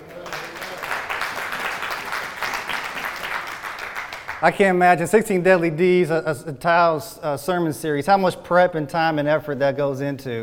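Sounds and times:
audience applause: 0.0s - 4.8s
speech: 4.4s - 10.4s.

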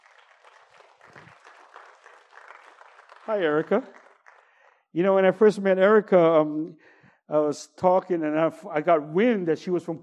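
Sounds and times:
audience clapping to welcome a guest onto the stage: 0.0s - 4.9s
speech: 3.3s - 4.0s, 4.9s - 10.0s.

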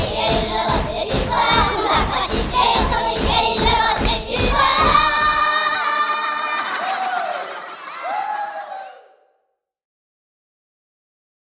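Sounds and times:
Irish drinking song: 0.0s - 7.7s
laughter: 5.6s - 9.1s.

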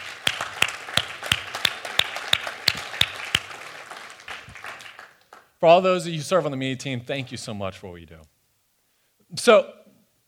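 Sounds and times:
audience applause: 0.0s - 5.5s
speech: 5.6s - 8.4s, 9.3s - 9.8s.

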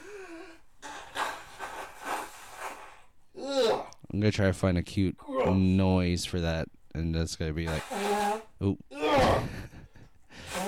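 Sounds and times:
person blowing their nose: 0.8s - 3.1s, 7.7s - 8.6s, 10.3s - 10.6s
speech: 4.2s - 9.6s.

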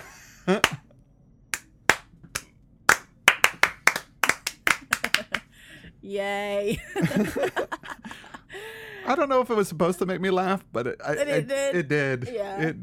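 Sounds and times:
slow clap: 0.0s - 0.8s, 1.5s - 5.4s
laughter: 4.8s - 5.5s, 6.7s - 8.9s
speech: 6.1s - 7.8s, 9.1s - 12.8s.

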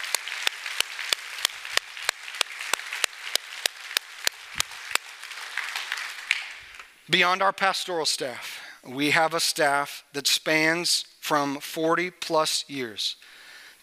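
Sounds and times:
audience applause: 0.0s - 6.9s
speech: 7.1s - 13.2s.

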